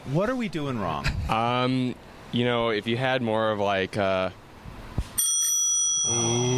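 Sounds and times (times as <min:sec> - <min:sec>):
speech: 0:00.0 - 0:04.4
bicycle bell rung to greet passing cyclists: 0:05.2 - 0:06.5.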